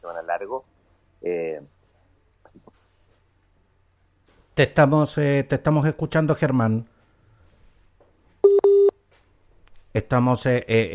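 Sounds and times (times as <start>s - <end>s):
speech: 0.4s - 1.7s, 4.6s - 6.9s, 10.0s - 10.9s
telephone line electronic beeps after a dropped call: 8.4s - 8.9s.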